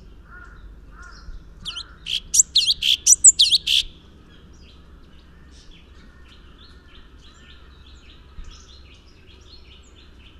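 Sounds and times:
Orange-bellied leafbird chattering high notes with squeaky whistle: 1.7s - 3.9s.

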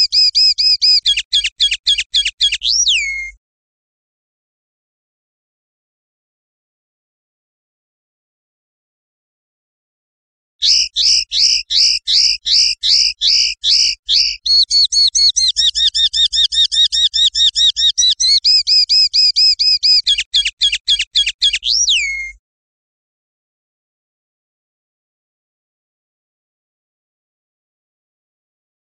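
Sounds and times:
European goldfinch song: 0.0s - 3.4s, 10.6s - 22.4s.

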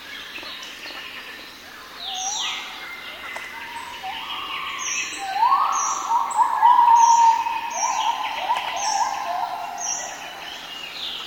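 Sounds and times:
high thin bird whistles: 4.1s - 9.3s
gibbon hooting: 4.1s - 10.3s.

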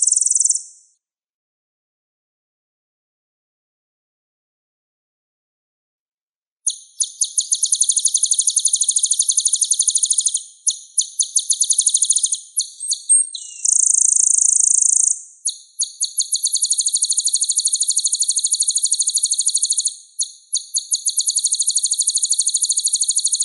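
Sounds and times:
sunbird song: 0.0s - 0.9s, 6.7s - 23.4s.

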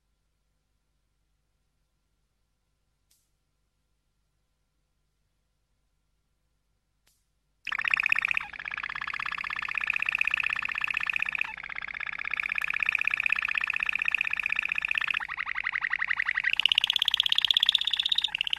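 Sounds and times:
Waterslager canary song: 7.7s - 18.5s.

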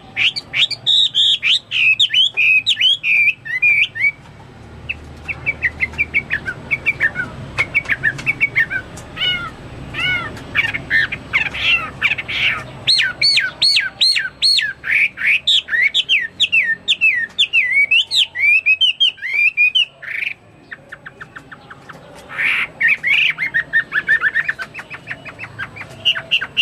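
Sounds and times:
Chinese hwamei song: 0.0s - 4.3s, 4.9s - 26.5s.

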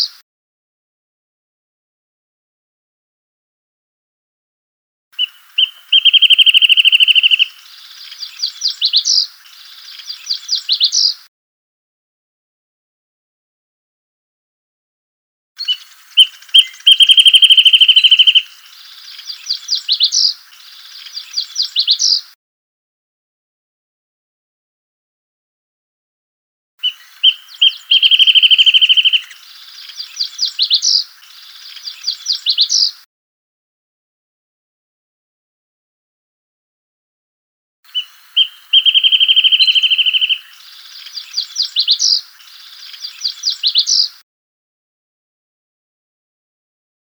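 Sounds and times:
wrentit call and song: 5.2s - 11.3s, 15.6s - 22.4s, 26.8s - 33.1s, 37.9s - 44.2s.

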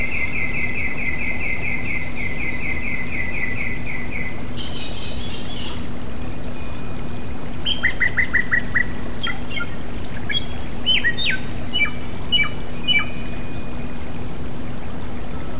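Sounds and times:
song for cage birds: 0.0s - 15.5s.

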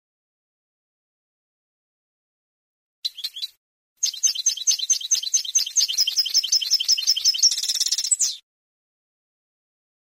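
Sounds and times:
European goldfinch twittering song: 3.0s - 8.4s.

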